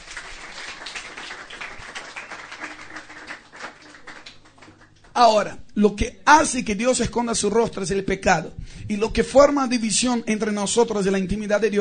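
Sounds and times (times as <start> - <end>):
audience applause: 0.0 - 5.1
speech: 5.2 - 11.7.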